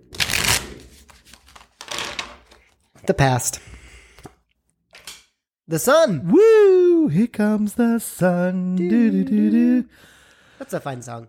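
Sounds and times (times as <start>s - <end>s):
tarot cards being shuffled: 0.1s - 2.9s
speech: 3.0s - 3.7s, 5.7s - 11.2s.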